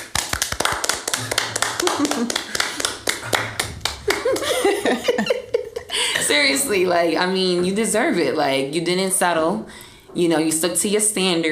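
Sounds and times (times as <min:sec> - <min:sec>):
round of applause: 0:00.0 - 0:04.8
laughter: 0:01.8 - 0:02.6, 0:03.4 - 0:06.3
speech: 0:04.9 - 0:05.4, 0:06.3 - 0:11.4.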